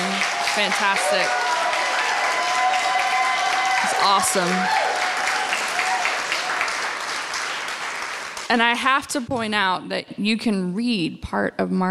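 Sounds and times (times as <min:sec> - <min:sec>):
audience applause: 0:00.0 - 0:08.5
speech: 0:00.6 - 0:01.5, 0:04.0 - 0:04.9, 0:08.5 - 0:11.8.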